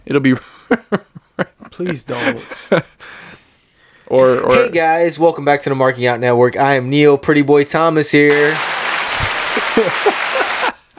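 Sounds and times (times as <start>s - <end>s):
speech: 0.1s - 1.1s, 1.7s - 3.2s, 4.1s - 8.8s, 9.8s - 10.2s
laughter: 0.7s - 3.2s, 9.1s - 10.9s
crowd clapping in a standing ovation: 8.3s - 10.9s.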